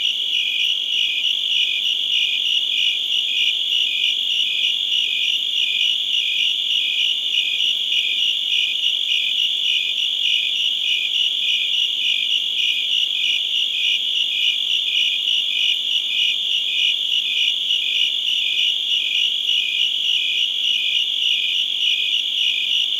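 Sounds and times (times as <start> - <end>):
crickets chirping: 0.0 - 22.9.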